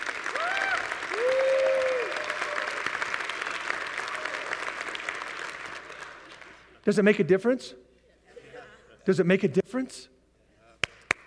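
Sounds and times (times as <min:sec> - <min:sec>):
church audience clapping: 0:00.0 - 0:06.8, 0:10.8 - 0:11.2
speech: 0:06.8 - 0:07.8, 0:09.0 - 0:10.1
laughter: 0:08.0 - 0:09.1.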